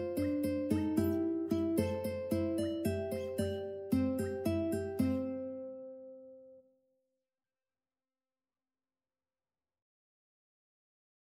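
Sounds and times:
ukulele: 0.0 - 6.2.

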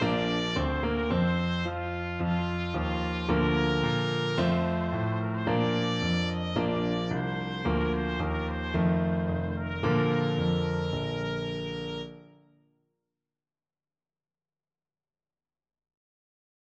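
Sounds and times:
trumpet piece: 0.0 - 12.5.

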